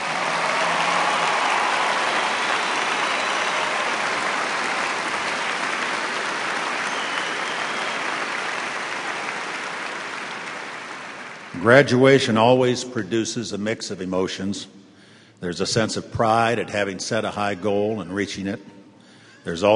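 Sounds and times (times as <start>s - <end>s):
audience applause: 0.0s - 11.8s
speech: 11.6s - 14.8s, 15.4s - 18.7s, 19.4s - 19.7s.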